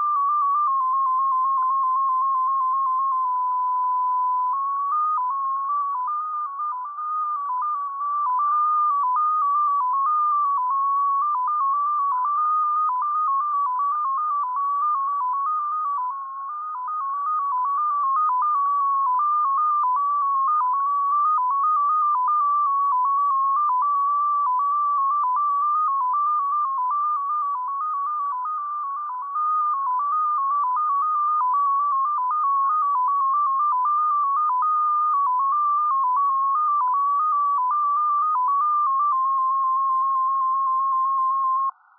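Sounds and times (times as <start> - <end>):
Russian intelligence 16-tone MFSK data signal at 7.49 baud: 0.0 - 41.9.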